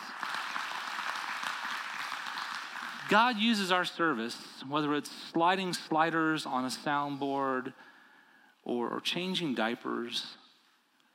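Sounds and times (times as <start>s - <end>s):
audience applause: 0.0s - 3.4s
speech: 3.1s - 7.9s, 8.7s - 10.4s.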